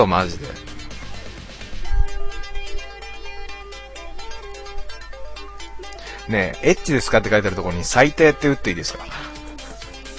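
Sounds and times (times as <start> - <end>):
speech: 0.0 - 0.6, 6.3 - 9.3
phone ringtone for an incoming call from Egypt: 0.4 - 8.1.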